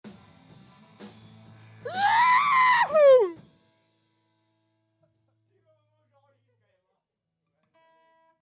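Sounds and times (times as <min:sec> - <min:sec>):
man shouting: 0:01.9 - 0:03.4.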